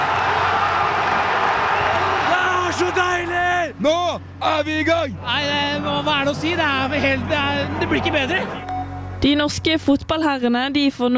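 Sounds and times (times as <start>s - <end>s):
football fans cheering at Ullevål stadium: 0.0s - 8.7s
speech: 4.4s - 11.1s.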